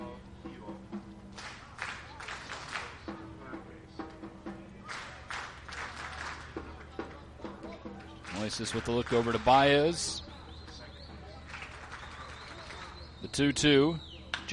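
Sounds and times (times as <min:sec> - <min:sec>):
clapping from the Mets baseball dugout: 0:01.3 - 0:03.3, 0:04.8 - 0:13.2, 0:14.3 - 0:14.5
speech: 0:08.4 - 0:10.2, 0:13.4 - 0:14.5.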